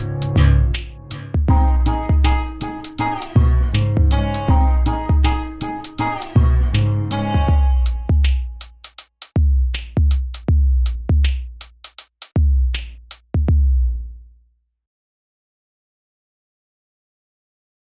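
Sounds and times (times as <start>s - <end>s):
music beat: 0.0s - 14.2s.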